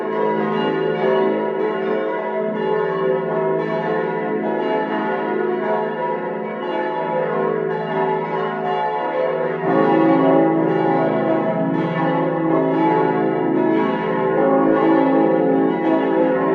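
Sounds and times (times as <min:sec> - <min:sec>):
parish church bells ringing: 0:00.0 - 0:16.5.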